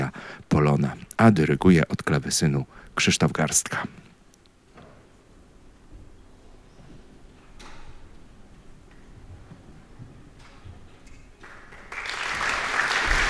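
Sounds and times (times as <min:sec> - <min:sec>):
speech: 0:00.6 - 0:04.1
audience applause for a conductor: 0:11.4 - 0:13.2.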